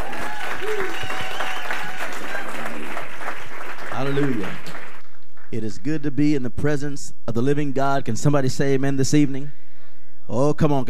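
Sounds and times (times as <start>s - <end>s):
church congregation applause at an evening service welcoming a pastor: 0.0s - 5.5s
speech: 4.1s - 4.6s, 5.5s - 9.6s, 10.3s - 10.8s.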